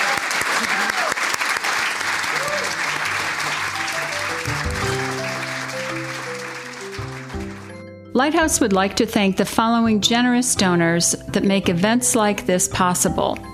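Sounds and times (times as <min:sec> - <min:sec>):
audience applause: 0:00.0 - 0:07.8
speech: 0:08.2 - 0:13.5.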